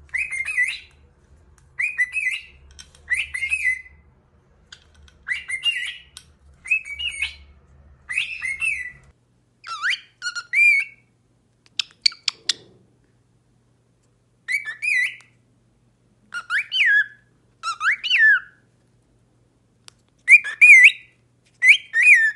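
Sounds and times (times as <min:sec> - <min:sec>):
cockatiel whistling: 0:00.1 - 0:00.9, 0:01.8 - 0:04.0, 0:05.2 - 0:07.5, 0:08.1 - 0:09.0, 0:09.6 - 0:11.1, 0:14.5 - 0:15.3, 0:16.3 - 0:18.6, 0:20.3 - 0:22.3.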